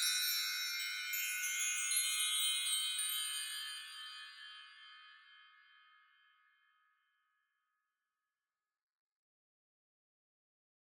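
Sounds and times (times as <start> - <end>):
wind chimes with long reverb: 0.0 - 7.0.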